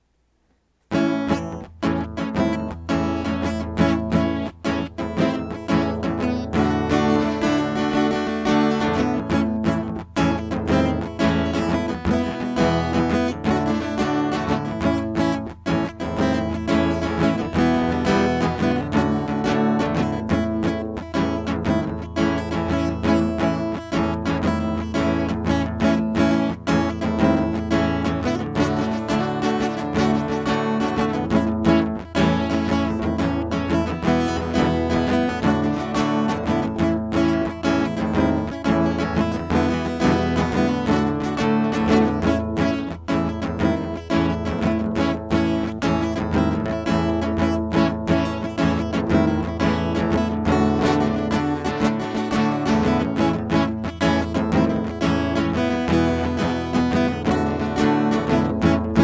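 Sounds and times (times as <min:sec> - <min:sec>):
guitar instrumental: 0:00.9 - 0:59.0.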